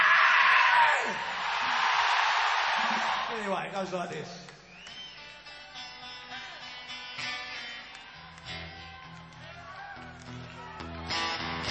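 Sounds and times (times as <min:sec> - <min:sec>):
audience at a live music performance screaming: 0:00.0 - 0:03.6, 0:07.9 - 0:11.7
speech: 0:00.8 - 0:01.8, 0:02.8 - 0:04.6.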